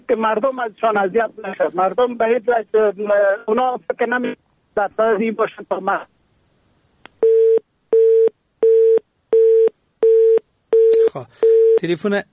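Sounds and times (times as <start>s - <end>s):
speech: 0.1s - 6.1s, 11.1s - 12.3s
telephone busy tone after call disconnects: 7.2s - 11.8s.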